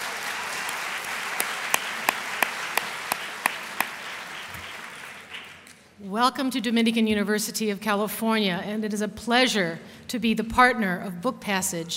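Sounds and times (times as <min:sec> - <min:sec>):
audience applause: 0:00.0 - 0:05.7
speech: 0:06.0 - 0:11.9.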